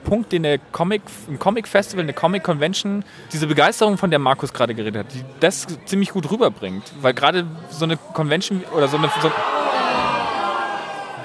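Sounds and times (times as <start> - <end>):
speech: 0.1 - 9.6
crowd shouting: 8.7 - 11.2.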